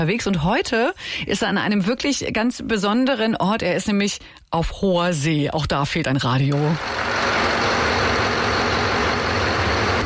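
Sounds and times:
speech: 0.0 - 7.3
ship's bow thruster motor running: 6.8 - 10.0.

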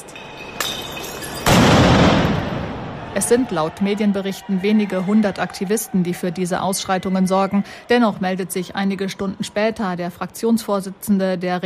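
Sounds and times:
firecrackers banging at a street protest: 0.6 - 3.3
speech: 3.2 - 11.6.

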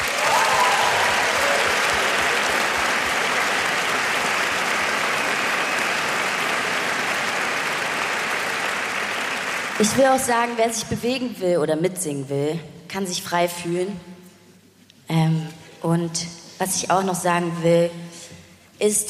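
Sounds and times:
scattered cheers: 0.0 - 9.7
concert audience applause: 0.0 - 10.0
speech: 9.8 - 14.1, 15.1 - 18.0, 18.8 - 19.0.

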